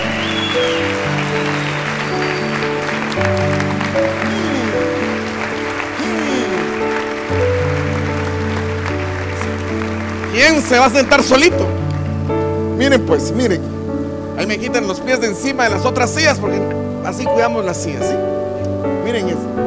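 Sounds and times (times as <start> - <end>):
audience applauding: 0.0 - 12.2
speech: 10.5 - 11.8, 12.8 - 13.8, 14.4 - 18.4, 19.1 - 19.6.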